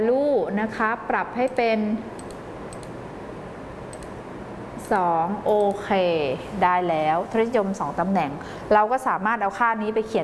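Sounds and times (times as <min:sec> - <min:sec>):
speech: 0:00.0 - 0:02.2, 0:04.9 - 0:10.2
computer mouse double clicks: 0:02.2 - 0:03.0, 0:03.9 - 0:04.2.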